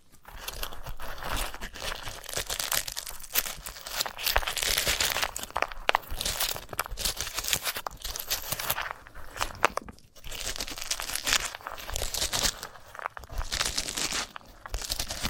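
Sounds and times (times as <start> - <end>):
sunflower head being handled and rubbed: 1.4 - 15.2.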